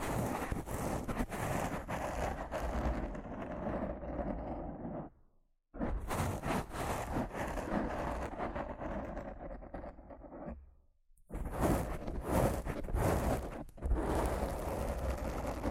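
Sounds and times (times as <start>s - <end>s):
rough scratching and brushing on a microphone: 0.0s - 5.1s, 5.8s - 10.6s, 11.3s - 15.6s.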